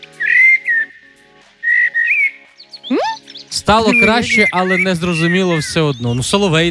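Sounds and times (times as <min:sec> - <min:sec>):
common blackbird singing: 0:00.1 - 0:06.6
speech: 0:03.7 - 0:06.6.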